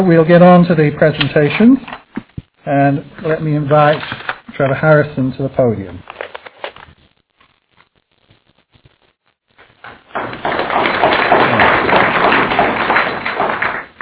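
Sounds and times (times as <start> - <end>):
speech: 0.0 - 2.0, 2.6 - 6.2
audience clapping: 9.6 - 14.0.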